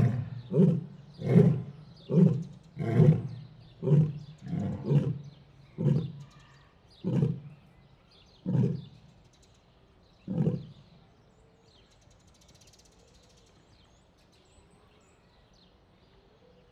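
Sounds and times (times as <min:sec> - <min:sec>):
lion outdoors at a zoo: 0:00.0 - 0:07.6, 0:08.4 - 0:09.1, 0:10.2 - 0:10.9.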